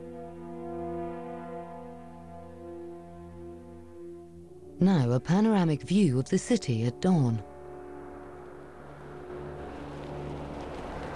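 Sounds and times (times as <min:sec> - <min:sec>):
speech: 0:04.8 - 0:07.5
two black cars' engines droning off-road in a dusty landscape: 0:07.4 - 0:11.1.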